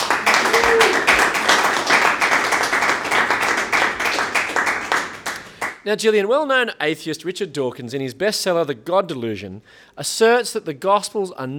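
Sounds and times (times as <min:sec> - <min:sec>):
audience applause: 0:00.0 - 0:05.8
speech: 0:05.8 - 0:11.5.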